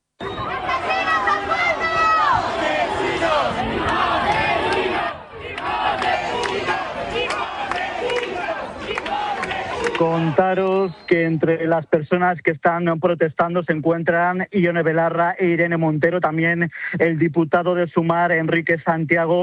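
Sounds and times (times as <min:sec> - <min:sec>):
protesters shouting at police cordon: 0:00.3 - 0:11.0
speech: 0:10.1 - 0:19.4.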